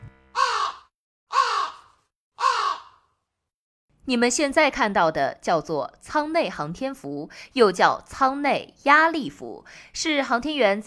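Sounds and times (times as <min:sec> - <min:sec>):
crow cawing: 0:00.4 - 0:03.2
speech: 0:04.1 - 0:10.8.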